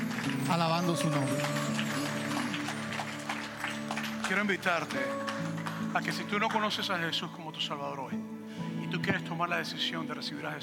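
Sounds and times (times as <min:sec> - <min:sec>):
audience applause: 0:00.0 - 0:06.7
speech: 0:00.5 - 0:01.8, 0:04.3 - 0:08.3, 0:08.9 - 0:10.6.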